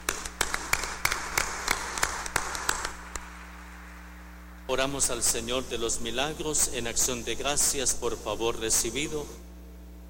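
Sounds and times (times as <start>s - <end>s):
sparse hand clapping: 0.0s - 4.2s
low hum: 0.0s - 10.0s
speech: 4.7s - 9.4s.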